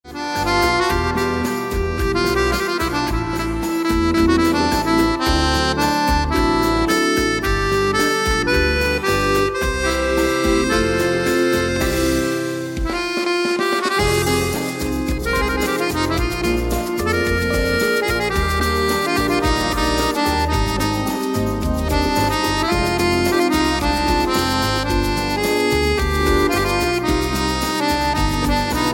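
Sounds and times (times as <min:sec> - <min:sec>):
accordion bolerito music: 0:00.0 - 0:28.9.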